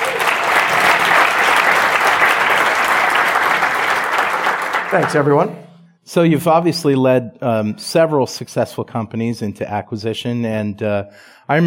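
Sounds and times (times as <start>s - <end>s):
audience applause: 0.0s - 5.5s
speech: 4.9s - 11.6s.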